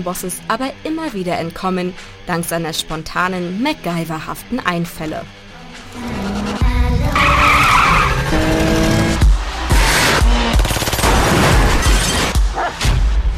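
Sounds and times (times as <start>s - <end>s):
speech: 0.0s - 5.4s, 6.0s - 6.3s
car engine roaring: 5.5s - 12.6s
car chase tyres screeching: 5.8s - 10.8s
car crash impacts: 9.4s - 13.3s.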